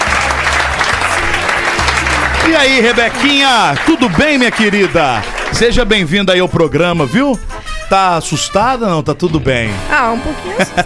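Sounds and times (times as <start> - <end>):
crowd applauding: 0.0 - 6.9
speech: 2.4 - 10.8.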